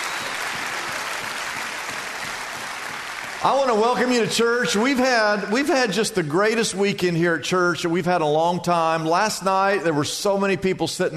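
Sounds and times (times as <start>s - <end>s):
audience clapping: 0.0s - 4.8s
speech: 3.4s - 11.1s.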